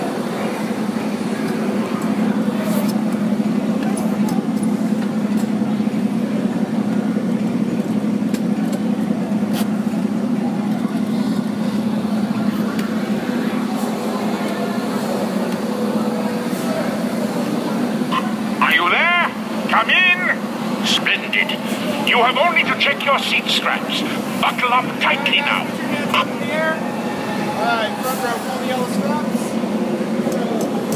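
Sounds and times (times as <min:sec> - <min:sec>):
Disney park ride vehicle engine rumbling: 0:00.0 - 0:30.9.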